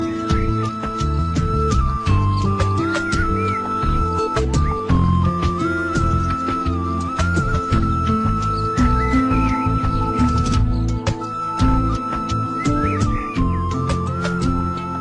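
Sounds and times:
flute: 0.0 - 15.0.

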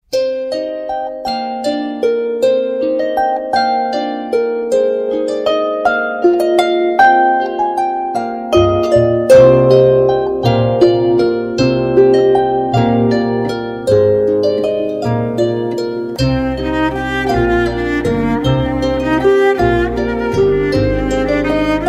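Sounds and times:
waltz music: 0.0 - 21.8.

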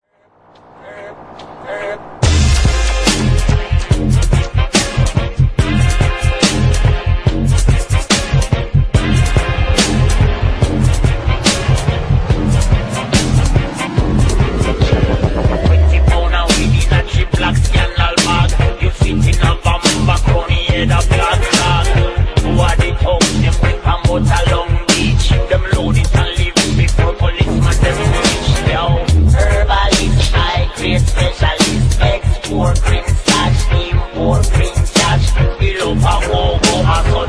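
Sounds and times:
dubstep remix: 0.6 - 33.7, 34.4 - 37.2.

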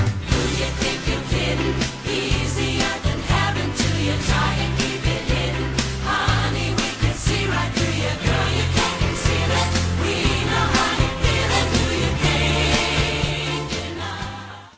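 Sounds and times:
karaoke singing: 0.1 - 14.7.

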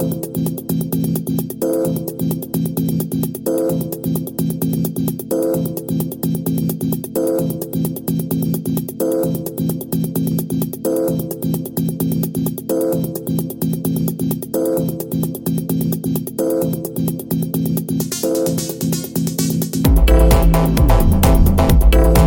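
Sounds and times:
techno music: 0.0 - 22.2.

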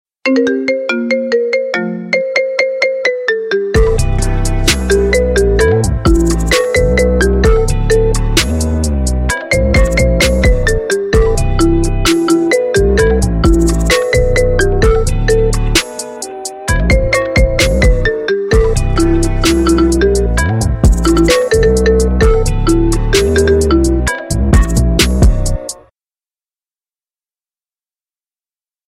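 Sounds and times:
marimba bumps: 0.3 - 16.1, 16.7 - 25.6.

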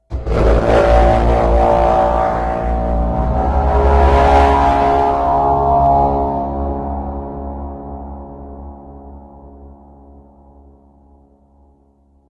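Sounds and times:
war horn: 0.1 - 9.9.

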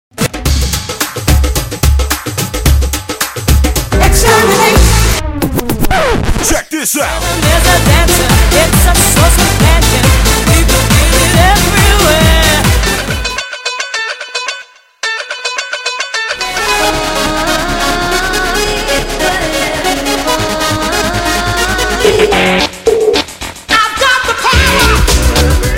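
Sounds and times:
dance music: 0.4 - 13.4, 16.4 - 25.7.

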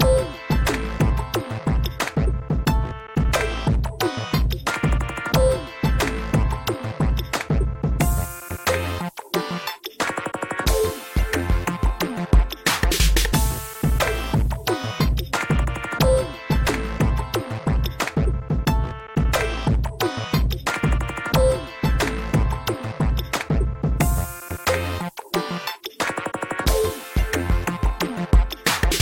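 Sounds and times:
hot hip hop music: 0.0 - 29.0.

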